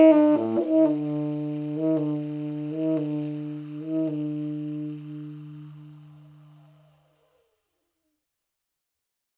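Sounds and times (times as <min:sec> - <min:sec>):
tenor saxophone: 0:00.0 - 0:07.5.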